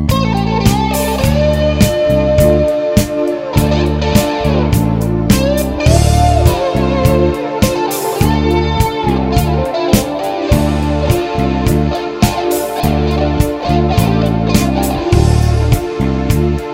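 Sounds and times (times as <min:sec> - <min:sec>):
guitar solo: 0:00.1 - 0:16.6.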